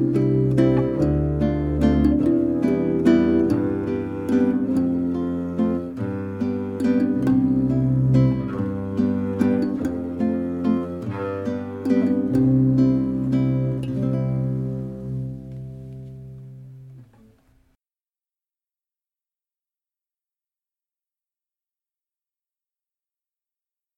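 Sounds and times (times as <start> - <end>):
instrumental song without vocals: 0.0 - 17.7.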